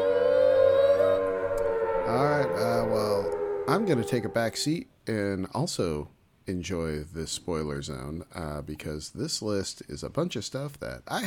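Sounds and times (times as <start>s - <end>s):
siren wailing: 0.0s - 4.8s
speech: 3.7s - 11.2s.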